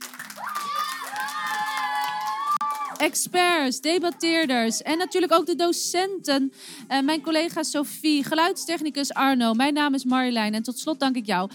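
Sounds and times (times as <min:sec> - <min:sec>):
students cheering: 0:00.0 - 0:03.1
students applauding: 0:00.0 - 0:04.6
speech: 0:03.0 - 0:11.5.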